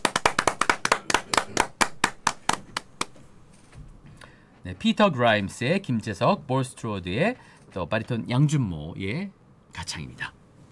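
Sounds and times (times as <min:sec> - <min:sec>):
audience applause: 0:00.0 - 0:03.1
speech: 0:04.6 - 0:10.4.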